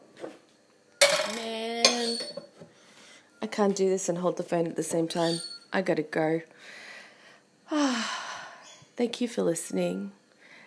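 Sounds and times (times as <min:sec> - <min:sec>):
ceramic bowl clinking as it's picked up and set down: 0:01.0 - 0:02.5
speech: 0:03.4 - 0:06.8, 0:09.0 - 0:10.2.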